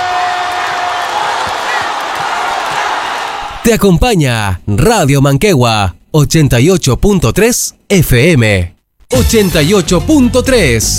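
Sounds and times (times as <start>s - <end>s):
crowd cheering: 0.0s - 3.7s
speech: 3.7s - 10.9s.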